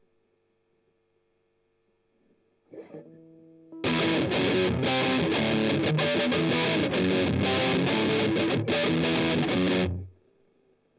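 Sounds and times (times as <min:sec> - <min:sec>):
strummed octaves: 0:03.8 - 0:10.1.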